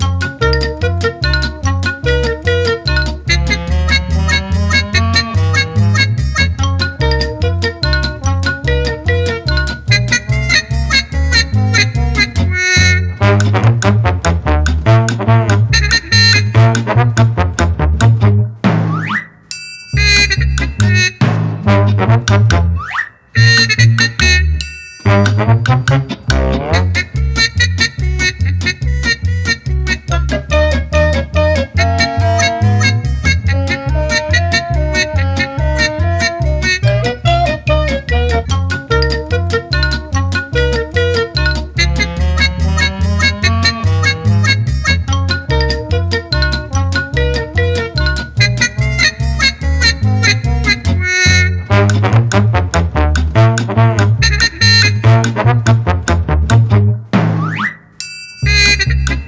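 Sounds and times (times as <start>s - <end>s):
game music: 0.0s - 59.2s.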